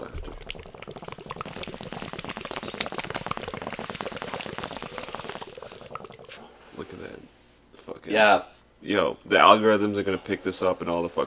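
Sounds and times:
bong bubbling: 0:00.0 - 0:07.4
speech: 0:08.1 - 0:11.2.

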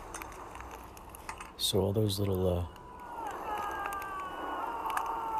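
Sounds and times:
speech: 0:01.7 - 0:02.8
small game characters yelling in game credits: 0:02.8 - 0:05.3.

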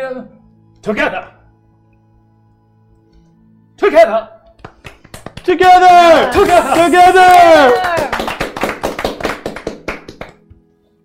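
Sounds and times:
speech: 0:00.0 - 0:01.4, 0:03.8 - 0:04.4, 0:05.5 - 0:08.3
small group applause: 0:04.6 - 0:10.4.

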